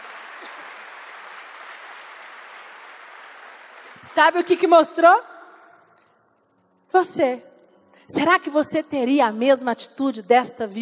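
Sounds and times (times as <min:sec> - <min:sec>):
loud crowd applause: 0:00.0 - 0:04.1
speech: 0:04.0 - 0:05.3, 0:06.9 - 0:07.5, 0:08.1 - 0:10.8.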